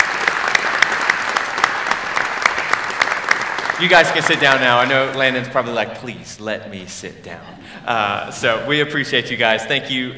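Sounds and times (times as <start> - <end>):
crowd applauding: 0.0 - 5.4
speech: 3.8 - 10.1.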